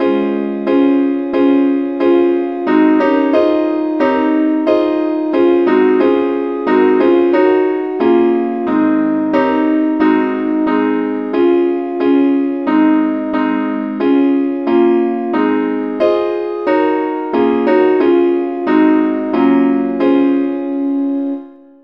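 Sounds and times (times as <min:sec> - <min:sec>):
lead melody in D flat: 0:00.0 - 0:21.8.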